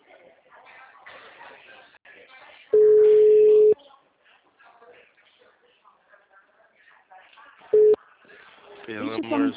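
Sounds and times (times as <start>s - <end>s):
electronic telephone beep: 2.8s - 3.8s, 7.8s - 8.0s
speech: 8.9s - 9.5s.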